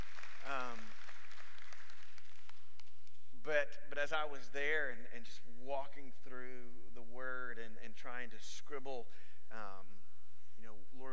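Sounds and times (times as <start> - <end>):
audience applause: 0.0 - 2.6
speech: 3.5 - 10.0, 10.6 - 11.1.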